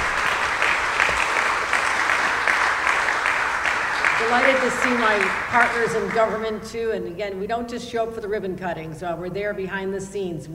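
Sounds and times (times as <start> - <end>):
audience applause: 0.0 - 6.4
speech: 4.3 - 10.5.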